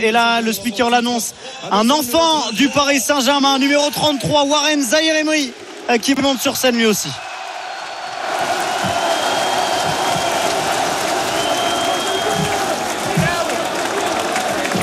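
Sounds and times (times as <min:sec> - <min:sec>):
speech: 0:00.0 - 0:07.3
Parisian crowd applause and cheering at the Champ de Mars: 0:04.0 - 0:14.8.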